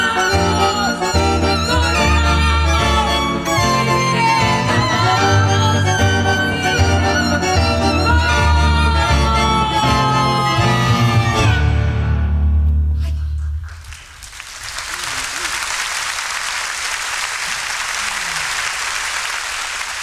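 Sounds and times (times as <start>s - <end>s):
live song with instruments: 0.0s - 12.8s
audience applause: 13.7s - 20.0s.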